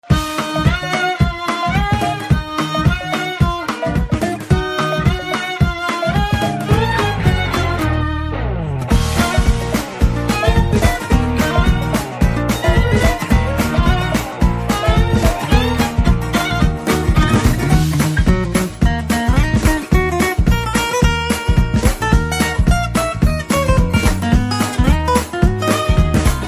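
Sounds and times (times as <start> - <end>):
Telugu tone ringtone: 0.1 - 8.3, 8.9 - 26.4.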